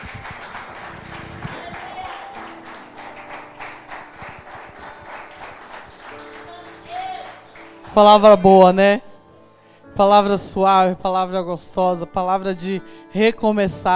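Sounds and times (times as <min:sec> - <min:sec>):
audience applause: 0:00.0 - 0:07.8
speech: 0:07.9 - 0:09.1, 0:10.0 - 0:13.9.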